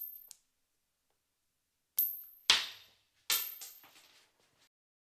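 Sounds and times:
coin tossing: 2.0s - 4.6s.

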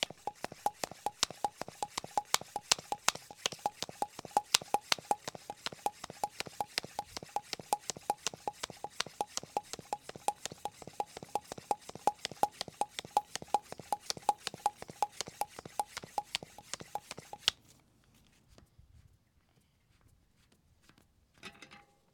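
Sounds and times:
bicycle tyre deflating: 0.0s - 17.5s.

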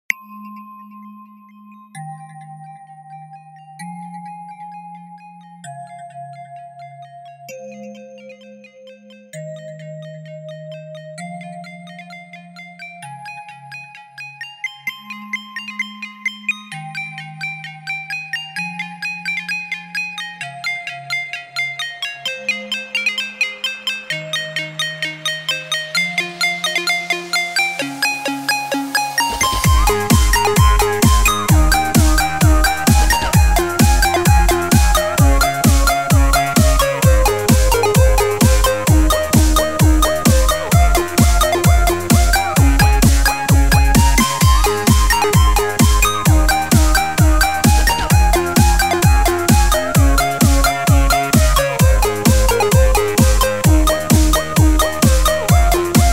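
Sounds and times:
8-bit music: 22.3s - 56.1s.

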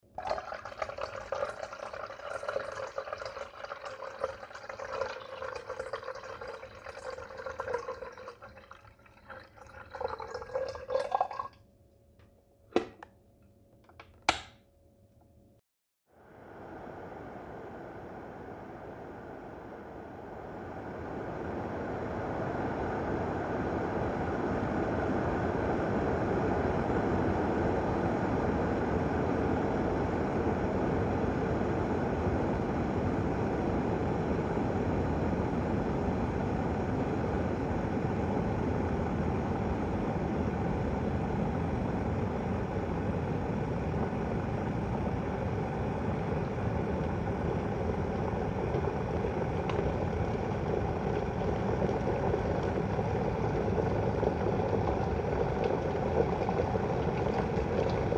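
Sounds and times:
water boiling: 0.0s - 11.6s, 20.7s - 58.1s
lid rattling: 12.8s - 13.1s.

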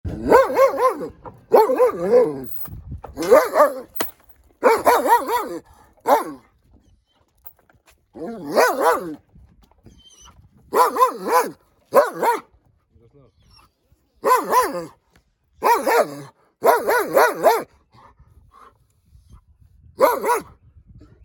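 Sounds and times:
dog barking: 0.2s - 2.4s, 3.2s - 3.9s, 4.6s - 6.4s, 8.4s - 9.2s, 10.7s - 12.5s, 14.2s - 14.9s, 15.6s - 17.7s, 20.0s - 20.5s.

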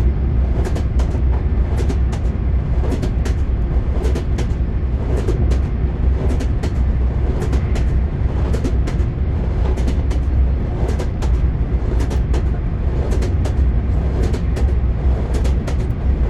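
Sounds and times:
train wheels knocking: 0.5s - 16.2s.

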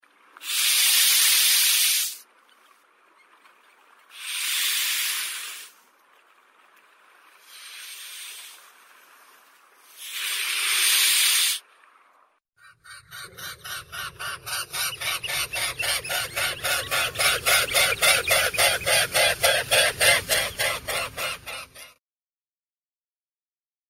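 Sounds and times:
swan hissing: 0.4s - 2.2s, 4.1s - 5.8s, 7.4s - 8.7s, 9.8s - 11.6s, 13.0s - 22.0s.

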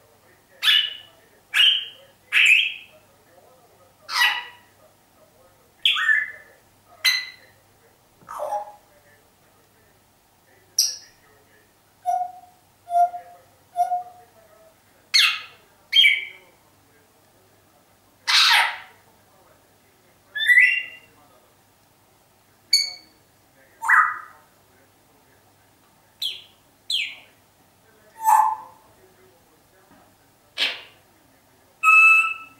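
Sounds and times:
zhako parrot calling: 0.6s - 3.0s, 4.1s - 4.8s, 5.8s - 7.6s, 8.3s - 8.8s, 12.0s - 14.3s, 15.1s - 16.4s, 18.2s - 19.0s, 20.4s - 21.1s, 22.7s - 23.1s, 23.8s - 24.5s, 26.2s - 27.3s, 28.2s - 28.9s, 30.6s - 31.0s, 31.8s - 32.5s.

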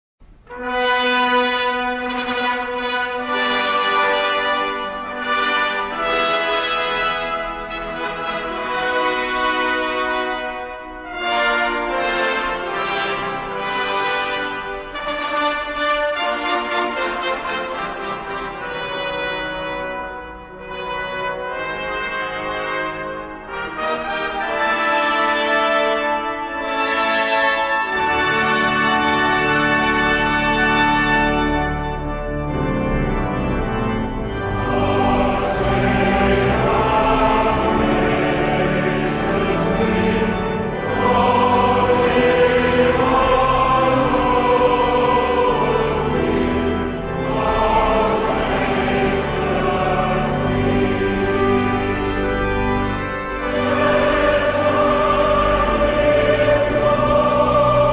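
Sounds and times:
national anthem: 0.3s - 57.9s.

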